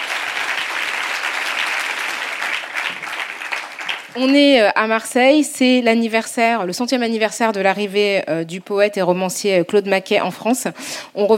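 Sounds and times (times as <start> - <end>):
audience applause: 0.0 - 4.2
speech: 4.2 - 11.3.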